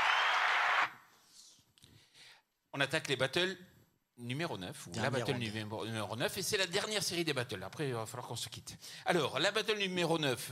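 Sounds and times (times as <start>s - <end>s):
audience applause: 0.0s - 1.0s
speech: 2.8s - 10.5s.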